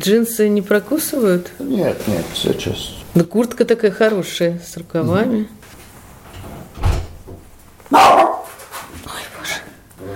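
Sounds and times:
speech: 0:00.0 - 0:05.7
dog barking: 0:07.9 - 0:08.6.

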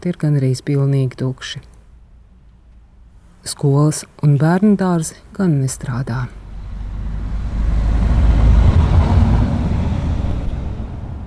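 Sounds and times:
speech: 0:00.0 - 0:01.7, 0:03.4 - 0:06.4
two armored vehicles driving past: 0:06.4 - 0:11.2.

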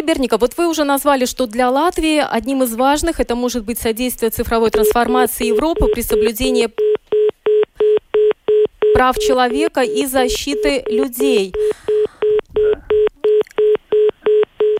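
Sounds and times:
speech: 0:00.1 - 0:07.0, 0:09.0 - 0:11.9
strange telephone beep tone: 0:04.6 - 0:14.7.

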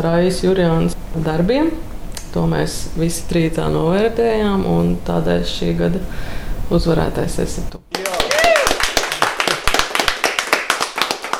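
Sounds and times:
speech: 0:00.0 - 0:07.9
audience applause: 0:07.9 - 0:11.3.

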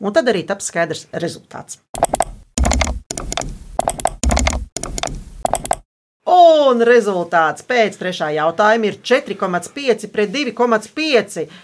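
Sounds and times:
speech: 0:00.0 - 0:02.1, 0:06.7 - 0:11.6
computer mouse clicking: 0:02.0 - 0:05.8.

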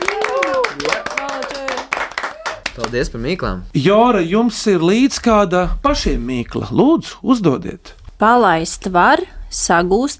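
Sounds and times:
applause for the winners: 0:00.0 - 0:03.1
speech: 0:02.8 - 0:10.1.

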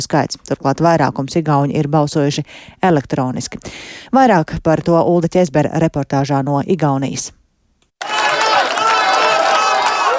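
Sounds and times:
speech: 0:00.0 - 0:07.4
Reform Party members cheering and applauding: 0:08.0 - 0:10.1.

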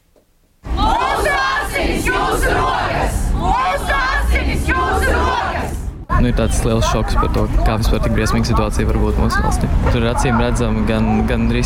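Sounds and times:
protest crowd shouting at a picket: 0:00.7 - 0:08.4
speech: 0:06.2 - 0:11.6.

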